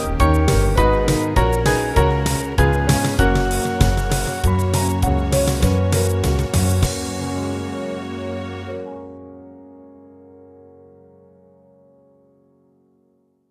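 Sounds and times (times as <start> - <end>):
band playing: 0.0 - 8.9.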